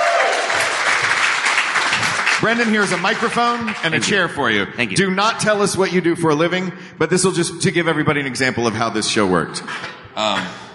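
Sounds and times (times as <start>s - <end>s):
audience applause: 0.0s - 4.4s
speech: 2.4s - 10.7s.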